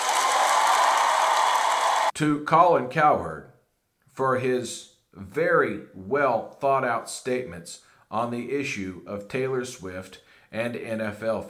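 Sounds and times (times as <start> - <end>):
applause: 0.0 - 2.2
speech: 2.2 - 3.5, 4.2 - 11.4.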